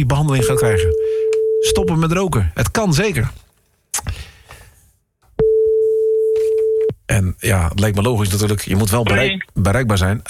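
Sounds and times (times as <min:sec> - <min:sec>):
speech: 0:00.0 - 0:04.1, 0:07.2 - 0:10.2
telephone line tone while dialling a call: 0:00.4 - 0:01.9, 0:05.4 - 0:06.9.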